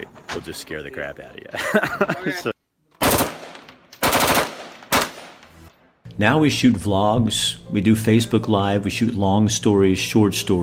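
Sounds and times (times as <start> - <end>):
speech: 0.4 - 2.5, 6.2 - 10.6
laughter: 1.4 - 2.6
machine gun fire from enthusiasts shooting at an organized event: 3.0 - 5.2.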